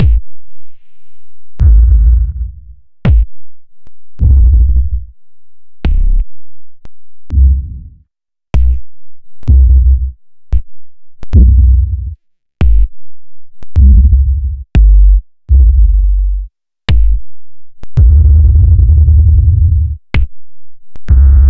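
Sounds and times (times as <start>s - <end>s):
post-processed kick drums: 0.0s - 0.9s, 1.6s - 5.2s, 7.3s - 8.0s, 8.6s - 8.9s, 9.5s - 13.1s, 13.7s - 17.3s, 18.0s - 20.5s, 21.1s - 21.4s.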